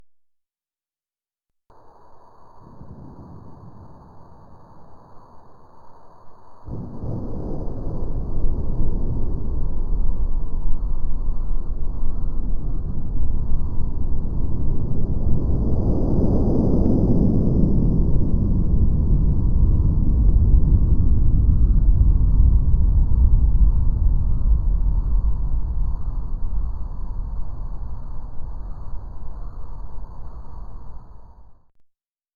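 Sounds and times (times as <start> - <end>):
earthquake rumble: 6.7 - 31.6.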